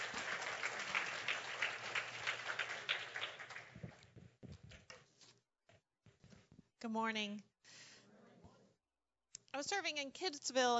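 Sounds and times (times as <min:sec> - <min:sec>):
audience applause: 0:00.0 - 0:04.1
speech: 0:06.8 - 0:07.5, 0:09.6 - 0:10.7.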